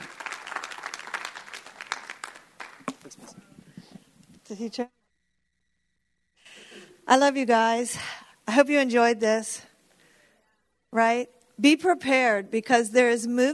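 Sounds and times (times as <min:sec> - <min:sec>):
audience applause: 0:00.0 - 0:03.4
speech: 0:04.5 - 0:05.0, 0:07.1 - 0:09.7, 0:11.0 - 0:13.5.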